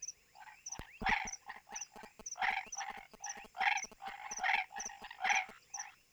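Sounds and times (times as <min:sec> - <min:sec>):
Hypsiboas raniceps calling at Lago de Alter do Chão: 0:00.8 - 0:05.5.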